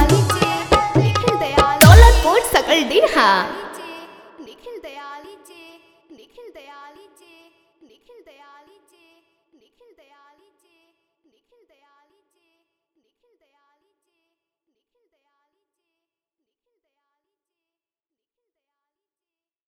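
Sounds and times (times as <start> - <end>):
hard bass viral Bhojpuri DJ song: 0.0 - 4.1.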